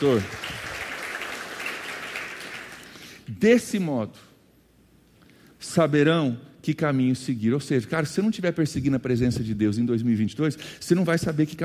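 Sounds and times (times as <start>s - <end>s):
speech: 0.0s - 0.4s, 3.3s - 4.3s, 5.6s - 11.6s
crowd clapping for the pastor: 0.0s - 3.1s.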